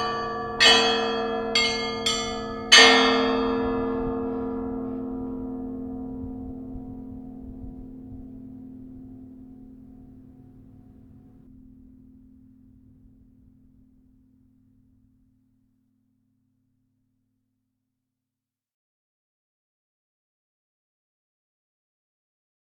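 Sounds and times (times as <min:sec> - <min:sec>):
church bells ringing for matins: 0:00.0 - 0:10.8.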